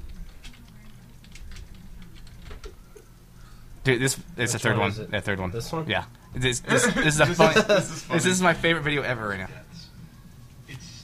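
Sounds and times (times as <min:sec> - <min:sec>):
computer keyboard typing while searching for a video online: 0:00.0 - 0:03.1
low steady hum: 0:00.0 - 0:11.0
speech: 0:03.9 - 0:09.7
laughter: 0:06.6 - 0:08.4.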